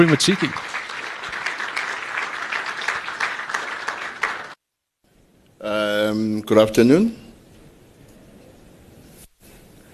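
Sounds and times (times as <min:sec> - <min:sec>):
speech: 0:00.0 - 0:00.7, 0:06.1 - 0:07.2
audience applause: 0:00.0 - 0:04.6.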